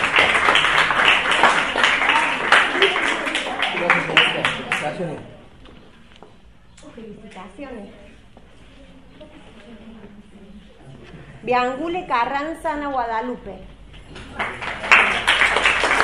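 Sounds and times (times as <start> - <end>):
audience applause: 0.0 - 5.1, 14.3 - 16.0
speech: 11.5 - 13.7.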